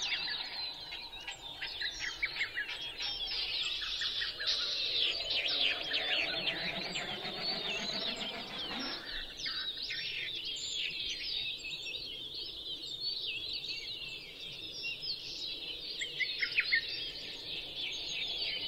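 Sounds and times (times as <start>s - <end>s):
dense chorus of high twittering birdsong: 0.0s - 18.6s
Latham's snipe display drone: 4.5s - 9.4s.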